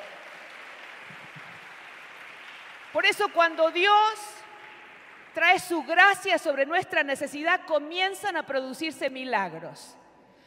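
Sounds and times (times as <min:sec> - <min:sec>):
audience applauding loudly: 0:00.0 - 0:05.4
speech: 0:03.0 - 0:04.3, 0:05.3 - 0:10.0.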